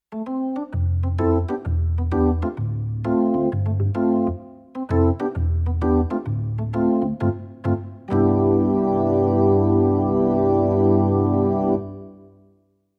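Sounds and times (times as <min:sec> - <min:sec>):
Thomann SP-320 organ: 0:00.2 - 0:12.4.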